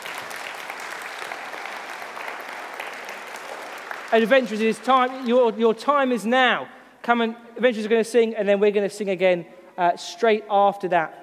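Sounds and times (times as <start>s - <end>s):
audience applause: 0.0s - 6.2s
speech: 4.1s - 11.2s.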